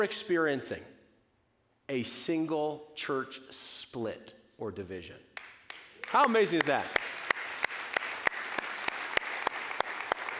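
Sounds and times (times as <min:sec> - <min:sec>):
speech: 0:00.0 - 0:01.0, 0:01.9 - 0:05.3, 0:06.1 - 0:07.1
audience clapping: 0:05.4 - 0:10.3.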